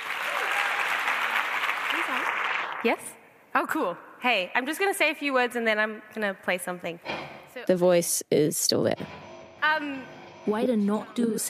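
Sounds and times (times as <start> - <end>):
audience applause to welcome performer: 0.0 - 2.9
whoops: 0.1 - 1.2
speech: 2.1 - 9.2, 9.8 - 11.4.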